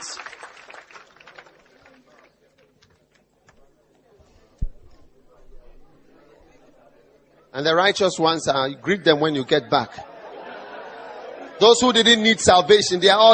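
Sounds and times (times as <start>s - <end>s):
audience applauding: 0.0s - 3.1s
speech: 7.6s - 10.1s, 11.6s - 13.3s
laughter: 9.0s - 12.6s.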